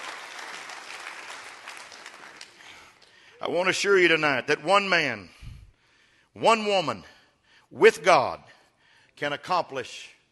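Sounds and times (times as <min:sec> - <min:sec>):
audience clapping hands: 0:00.0 - 0:03.3
speech: 0:03.4 - 0:05.4, 0:06.4 - 0:07.1, 0:07.7 - 0:08.6, 0:09.2 - 0:10.2.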